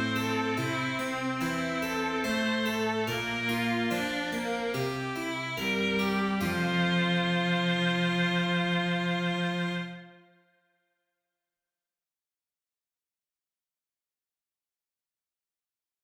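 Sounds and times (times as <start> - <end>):
horns in fifths: 0.0 - 10.1.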